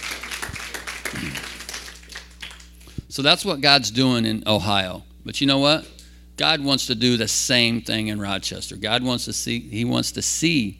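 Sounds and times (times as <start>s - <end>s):
audience clapping: 0.0s - 2.9s
speech: 3.2s - 10.7s.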